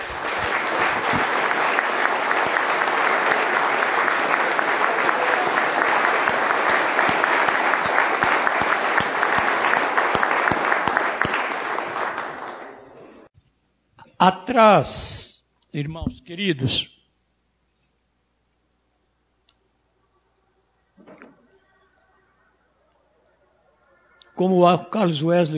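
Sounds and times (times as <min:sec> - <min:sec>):
audience applause: 0:00.0 - 0:13.3
speech: 0:14.2 - 0:16.9, 0:24.4 - 0:25.5.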